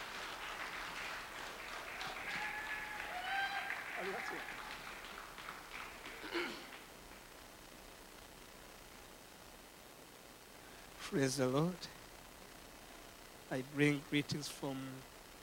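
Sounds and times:
faint applause from a church congregation welcoming a guest speaker: 0.0s - 7.3s
speech: 4.0s - 4.7s, 11.1s - 12.0s, 13.5s - 15.1s.

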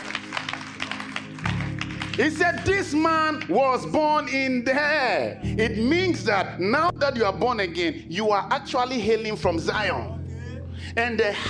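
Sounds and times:
audience clapping: 0.0s - 3.6s
speech: 2.2s - 10.2s, 10.9s - 11.4s.

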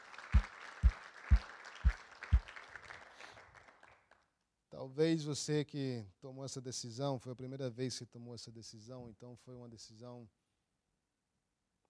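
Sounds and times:
audience applause: 0.0s - 4.0s
speech: 4.8s - 10.4s.

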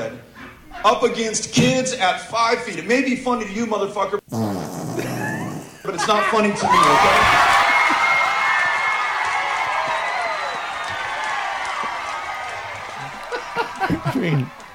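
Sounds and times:
speech: 0.0s - 4.4s, 6.1s - 7.6s, 14.3s - 14.6s
laughter: 5.0s - 8.5s, 12.6s - 14.7s
large crowd roaring: 6.2s - 14.7s
scattered claps: 6.7s - 14.7s.

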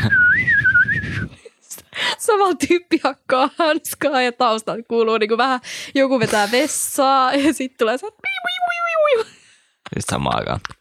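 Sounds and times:
person whistling an imitation of birdsong: 0.0s - 1.4s
speech: 2.3s - 9.3s, 9.9s - 10.7s.

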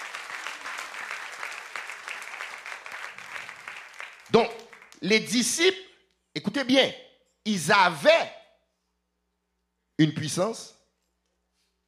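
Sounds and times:
audience applause: 0.0s - 5.0s
speech: 4.3s - 5.9s, 6.6s - 8.4s, 10.0s - 10.8s.

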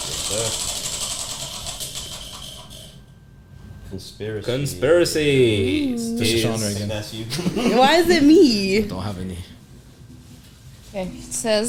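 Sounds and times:
game wheel spinning with ratcheting clicks: 0.0s - 2.9s
speech: 3.9s - 9.6s, 11.0s - 11.6s
laughter: 7.2s - 8.3s.

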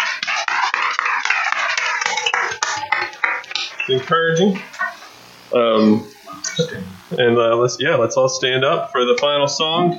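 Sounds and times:
audience applause: 0.0s - 6.1s
speech: 3.9s - 4.7s, 5.5s - 9.9s.

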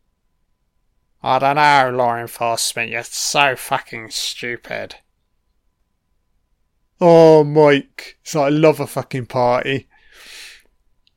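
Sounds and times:
speech: 1.2s - 5.0s, 7.0s - 10.4s
heavy breathing in film: 9.9s - 10.7s.

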